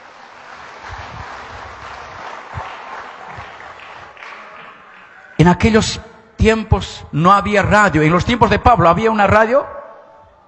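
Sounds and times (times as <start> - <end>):
people clapping for the Lord: 0.0 - 5.4
speech: 5.5 - 9.8.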